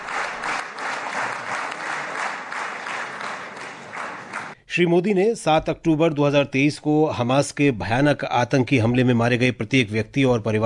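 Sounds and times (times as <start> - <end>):
loud applause from members of parliament: 0.0 - 4.6
speech: 4.8 - 10.6.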